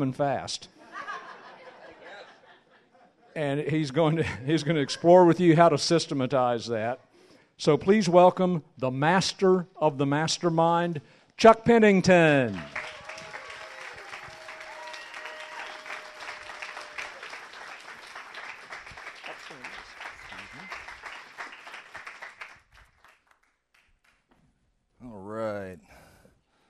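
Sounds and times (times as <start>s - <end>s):
speech: 0.0s - 1.1s, 3.4s - 12.8s
laughter: 0.8s - 5.6s, 19.2s - 21.0s
audience applause: 12.4s - 23.4s.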